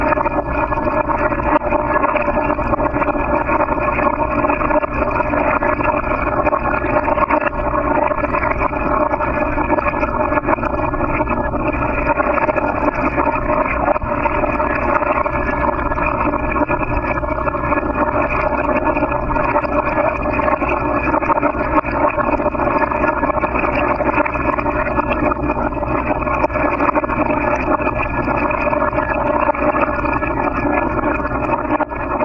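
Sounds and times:
water in a metal bowl in Northampton MA: 0.0s - 32.2s.

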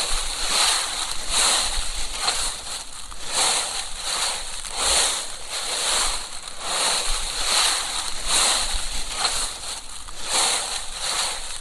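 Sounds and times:
constant hiss: 0.0s - 11.5s
dry London plane, oak and maple leaves crunching: 0.0s - 11.5s.

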